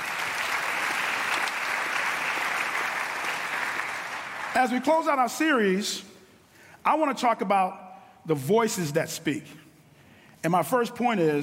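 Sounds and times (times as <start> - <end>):
audience applause: 0.0 - 4.6
speech: 4.6 - 6.1, 6.8 - 9.6, 10.4 - 11.4.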